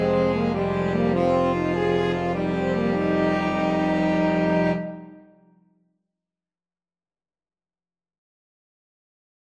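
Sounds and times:
flexible mixed ensemble of three players: 0.0 - 5.4.

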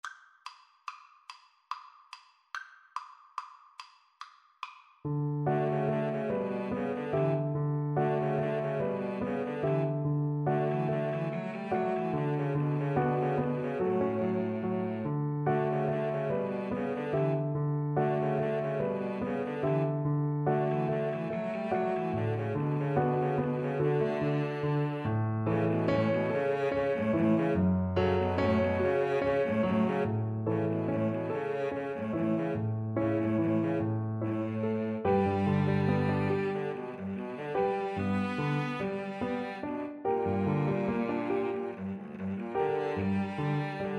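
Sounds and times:
cello: 5.4 - 43.9
violin: 5.4 - 43.9.

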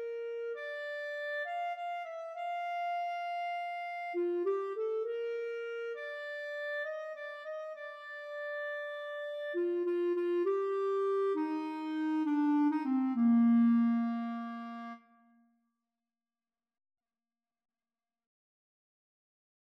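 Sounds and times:
flute and clarinet duet: 0.0 - 15.1.

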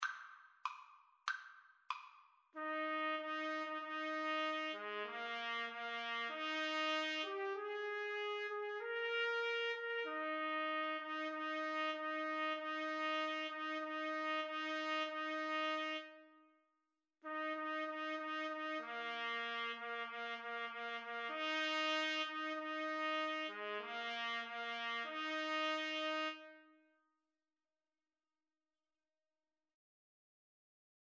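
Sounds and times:
trumpet duet: 2.6 - 16.4, 17.2 - 26.8.

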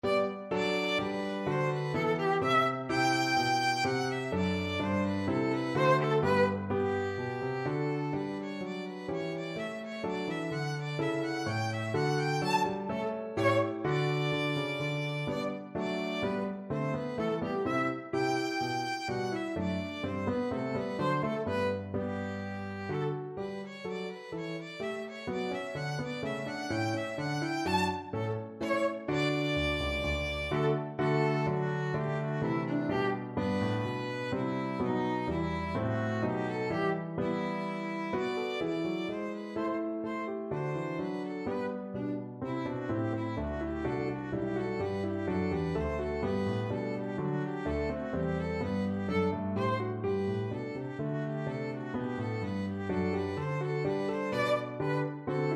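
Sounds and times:
violin bourree: 0.0 - 55.5.

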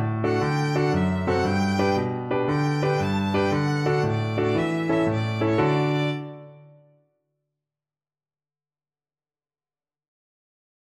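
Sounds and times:
violin and cello duet: 0.3 - 6.4.

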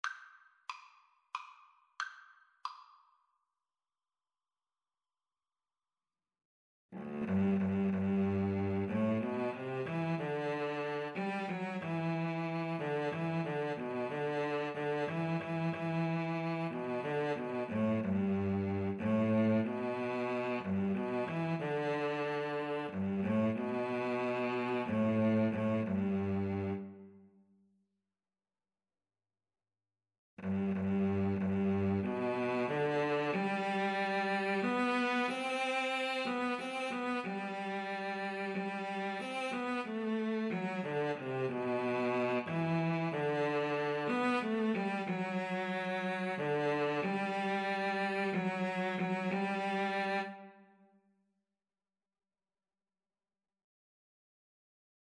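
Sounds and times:
cello duet: 7.0 - 27.2, 30.4 - 50.6.

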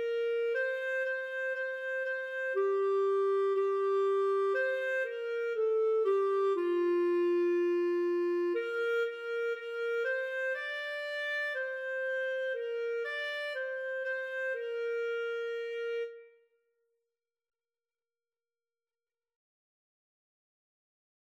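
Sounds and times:
clarinet duet: 0.0 - 16.4.

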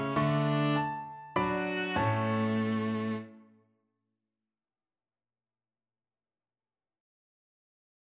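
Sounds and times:
violin and viola duet: 0.0 - 3.4.

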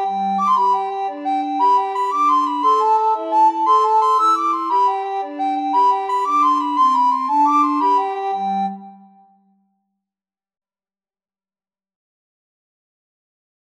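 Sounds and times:
recorder trio playing: 0.0 - 8.8.

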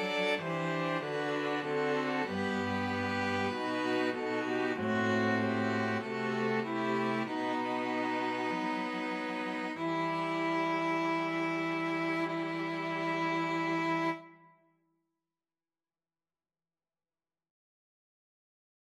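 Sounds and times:
string quartet playing: 0.0 - 14.3.

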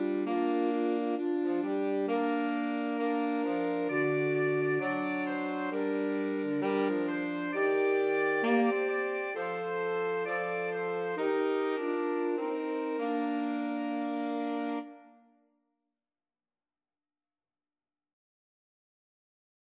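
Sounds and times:
two alto saxophones and a tenor saxophone: 0.0 - 15.3.

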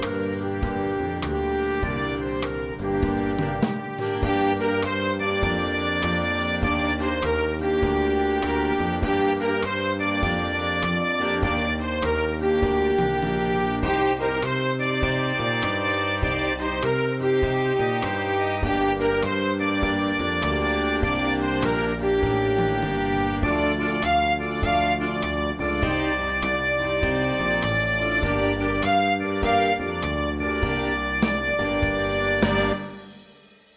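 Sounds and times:
cool blues band, mixed ensemble, playing: 0.0 - 33.2.

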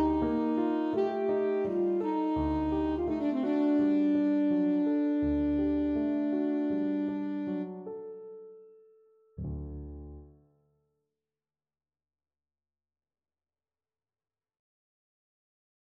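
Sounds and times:
saxophone: 0.0 - 7.9.

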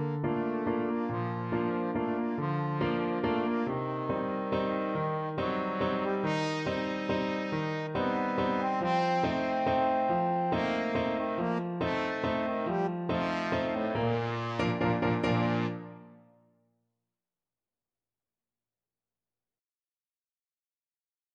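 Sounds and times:
trombone playing a waltz: 0.0 - 16.0.

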